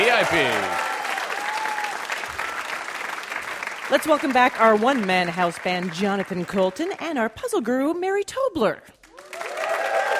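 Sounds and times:
live game show audience applause welcoming a guest: 0.0 - 7.0, 9.1 - 10.1
speech: 0.2 - 0.9, 3.9 - 9.0.

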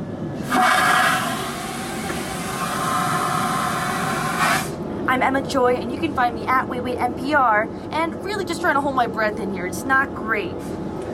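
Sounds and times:
airplane toilet flushing: 0.4 - 4.8
speech: 5.2 - 10.9.

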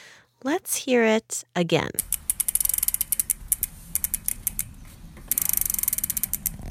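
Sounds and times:
speech: 0.4 - 2.1
bike chain spinning by turning the pedals: 2.1 - 4.6, 5.3 - 6.6.

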